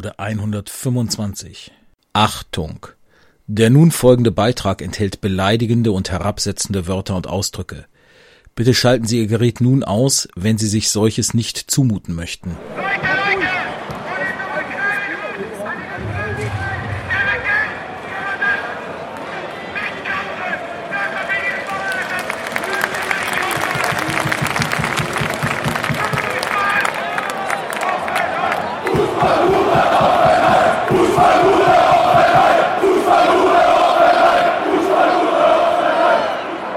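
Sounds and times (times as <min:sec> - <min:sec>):
speech: 0:00.0 - 0:07.9, 0:08.6 - 0:13.5
football fans chanting an abusive stadium chant: 0:12.6 - 0:21.2, 0:23.5 - 0:36.7
sharp claps or beats: 0:21.5 - 0:32.7.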